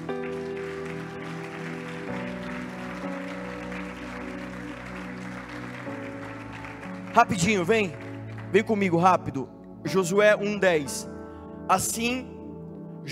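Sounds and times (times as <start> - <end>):
audience applauding: 0.0 - 9.2
speech: 7.2 - 11.1, 11.7 - 12.3.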